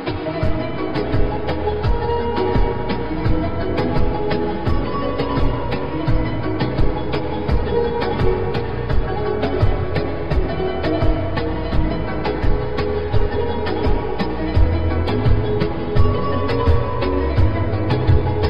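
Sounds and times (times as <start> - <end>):
Arabic instrumental ringtone: 0.2 - 18.4.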